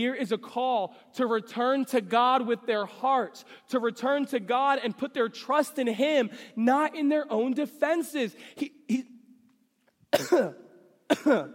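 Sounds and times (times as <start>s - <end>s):
speech: 0.0s - 9.1s, 10.1s - 11.5s
person coughing harshly while choking: 10.1s - 11.5s.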